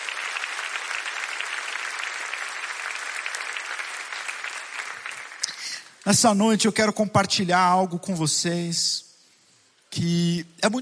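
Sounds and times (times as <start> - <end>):
audience applauding: 0.0 - 6.1
speech: 6.1 - 9.0, 10.0 - 10.8.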